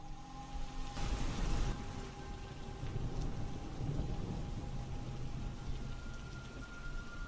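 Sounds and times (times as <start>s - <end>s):
rain on a tin roof: 0.0s - 7.2s.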